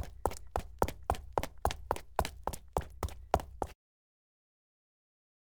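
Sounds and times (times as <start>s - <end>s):
foley footsteps of high heels on wet cement: 0.0s - 3.8s.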